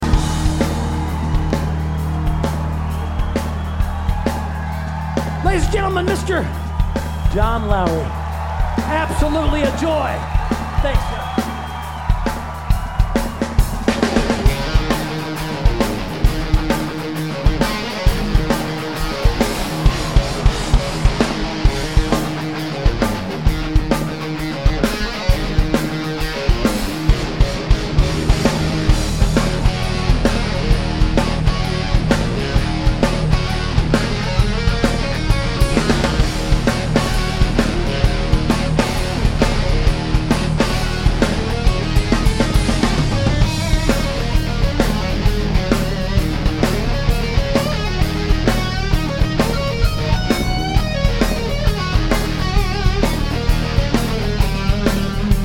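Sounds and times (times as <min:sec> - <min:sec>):
guitar solo: 0:00.0 - 0:55.4.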